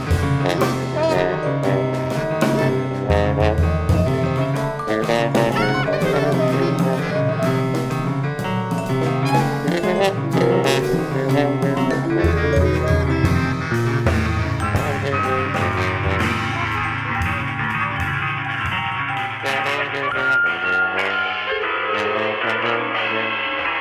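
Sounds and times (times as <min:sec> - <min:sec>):
vibraphone playing free jazz: 0:00.0 - 0:20.9
Rhodes electric piano playing free jazz: 0:00.0 - 0:23.8
bass clarinet playing free jazz: 0:00.0 - 0:23.8
drums playing free jazz: 0:00.0 - 0:23.8
trombone playing free jazz: 0:00.0 - 0:23.8
trumpet playing free jazz: 0:00.0 - 0:23.8.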